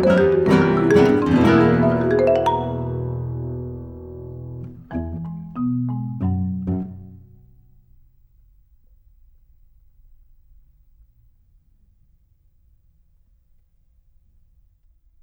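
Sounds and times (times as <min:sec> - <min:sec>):
percussion: 0:00.0 - 0:03.5
four guitars playing: 0:00.0 - 0:07.6.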